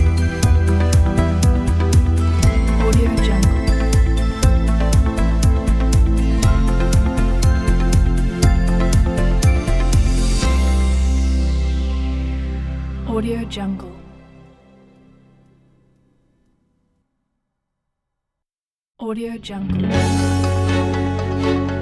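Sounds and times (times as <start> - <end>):
corporate technological music: 0.0 - 15.2, 20.0 - 21.8.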